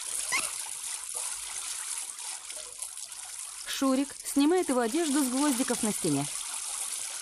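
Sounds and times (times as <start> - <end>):
person spitting out a mouthful of water in a wooden plank shower cabin: 0.0 - 0.8
water trickling and splattering in a wooden plank shower cabin: 0.0 - 7.2
speech: 3.8 - 6.4.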